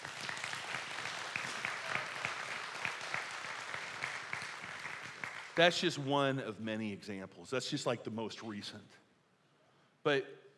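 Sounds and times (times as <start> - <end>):
audience clapping: 0.0 - 5.9
speech: 5.6 - 9.0, 10.0 - 10.4.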